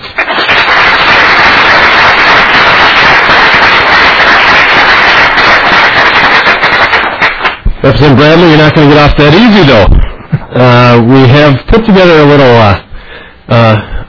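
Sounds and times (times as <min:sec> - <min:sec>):
crowd applause: 0:00.0 - 0:07.6
speech: 0:07.8 - 0:10.0, 0:10.6 - 0:12.8, 0:13.5 - 0:13.9.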